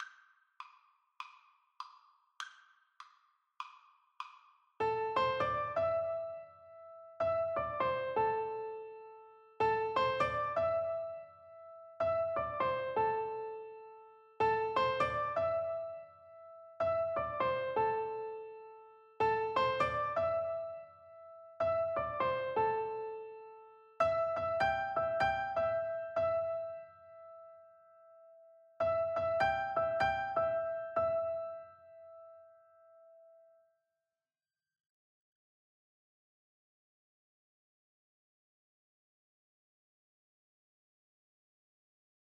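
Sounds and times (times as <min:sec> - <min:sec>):
piano duet: 0:04.8 - 0:33.6.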